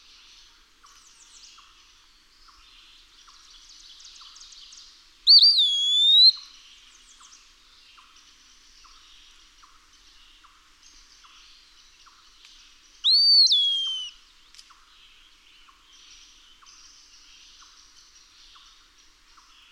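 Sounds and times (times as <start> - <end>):
Eastern wood-pewee whistle song: 5.3 - 6.4, 13.0 - 14.2.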